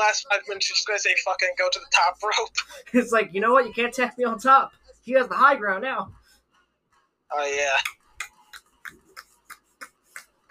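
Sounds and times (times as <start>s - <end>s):
speech: 0.1s - 6.2s, 7.3s - 8.0s
steady rhythmic hand clapping: 7.7s - 10.4s.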